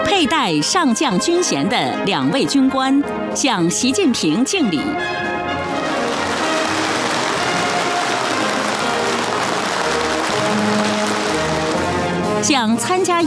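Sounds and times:
speech: 0.2 - 5.8, 12.4 - 13.2
warm applause from the audience: 5.8 - 12.3.

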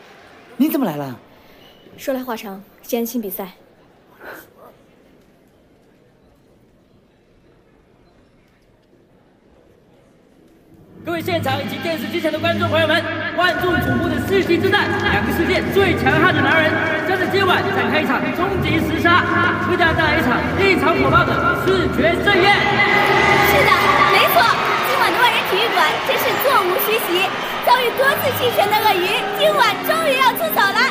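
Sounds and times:
speech: 0.6 - 1.3, 2.0 - 3.6, 11.2 - 24.6, 25.5 - 30.8
excited arena crowd chatter: 2.8 - 30.8
higher shouts from the crowd: 14.9 - 30.8.

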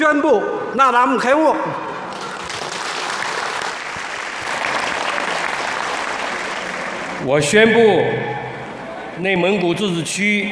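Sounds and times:
speech: 0.0 - 1.9, 7.2 - 8.3, 9.2 - 10.4
applause at the opening ceremony of the 36th tourism Naadam festival: 2.1 - 7.3.

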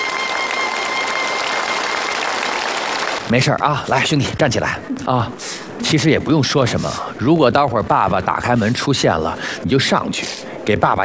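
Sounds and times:
audience applause: 0.0 - 3.4
speech: 3.3 - 11.0.

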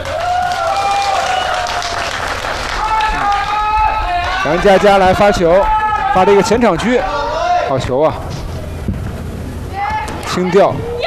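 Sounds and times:
spectator applause: 0.0 - 7.0
speech: 4.4 - 7.1, 7.7 - 8.3, 10.4 - 10.9.

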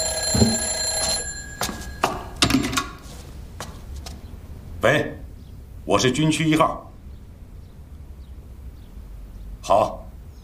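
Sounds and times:
telephone ringing: 0.0 - 3.0
speech: 5.9 - 6.9.

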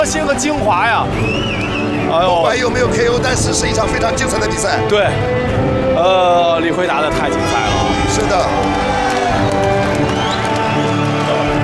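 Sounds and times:
speech: 0.0 - 9.6
audience cheering at a fight: 7.3 - 11.6.

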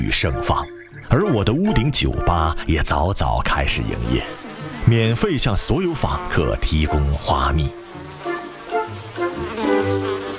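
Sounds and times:
speech: 0.0 - 7.8
bees buzzing as they drink nectar from flowers on a rooftop: 0.0 - 10.3.

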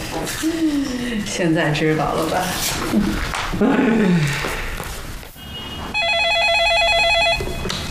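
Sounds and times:
speech: 0.1 - 4.6
telephone ringing with electronic trill: 5.7 - 7.7.

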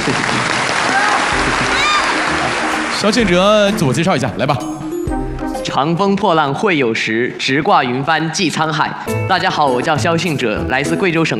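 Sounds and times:
audience applause: 0.0 - 4.1
speech: 3.0 - 4.8, 5.7 - 11.3.

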